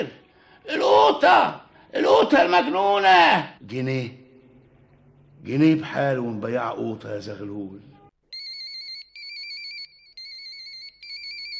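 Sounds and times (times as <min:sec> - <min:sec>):
speech: 0:00.0 - 0:04.2, 0:05.4 - 0:07.9
telephone ringing: 0:08.3 - 0:11.5.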